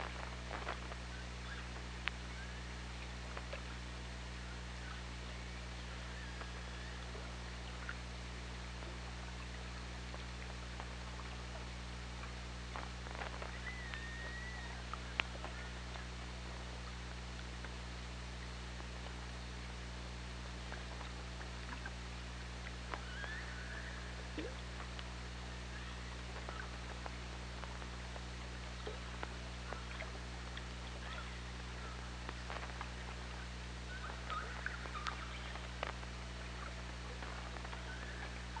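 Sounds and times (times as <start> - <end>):
low underwater drone: 0.0 - 38.5
orca whistled call: 13.5 - 14.8, 23.0 - 24.2.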